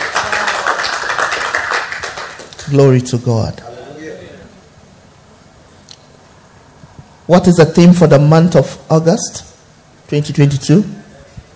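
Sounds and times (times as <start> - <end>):
church congregation clapping hands: 0.0 - 2.9
speech: 2.7 - 3.7, 7.3 - 9.5, 10.1 - 11.0.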